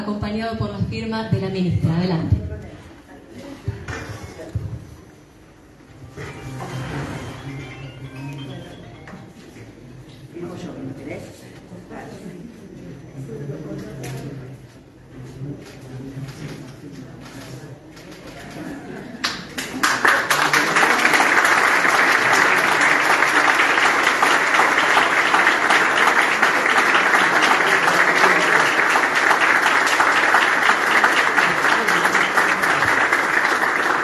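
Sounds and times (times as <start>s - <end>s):
speech: 0.3s - 2.4s
warm applause at a signing ceremony: 19.2s - 34.0s.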